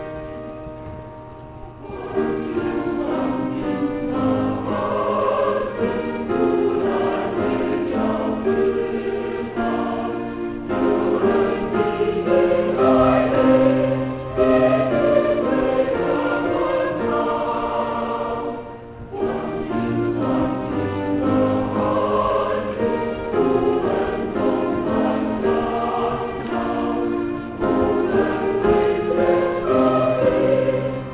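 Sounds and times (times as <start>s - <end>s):
choir singing: 1.8s - 31.1s.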